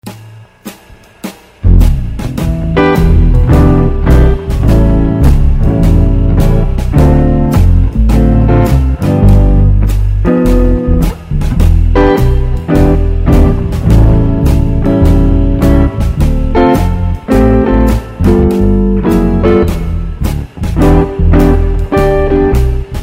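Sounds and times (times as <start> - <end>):
jazz music: 0.0 - 23.0.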